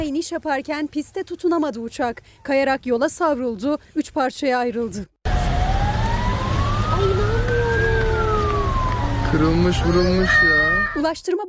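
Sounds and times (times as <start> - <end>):
speech: 0.1 - 5.1, 9.3 - 11.4
emergency vehicle sirens wailing: 5.3 - 11.2
low rumble of traffic and engine noise: 5.3 - 11.2.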